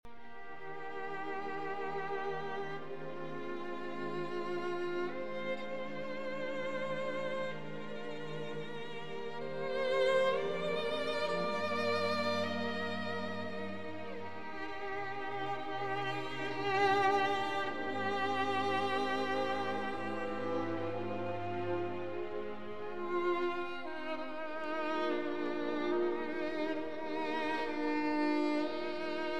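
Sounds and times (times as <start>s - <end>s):
violin concerto adagio in G minor: 0.0s - 29.3s.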